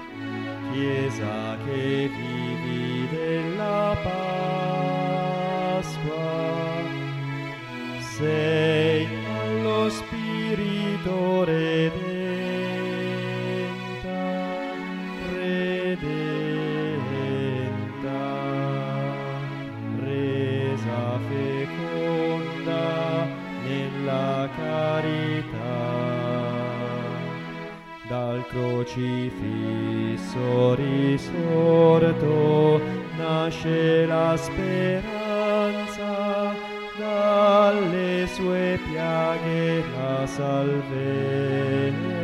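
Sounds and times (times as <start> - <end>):
contraltos singing in the Chiesa del Risorto: 0.5 - 27.5, 28.1 - 42.2.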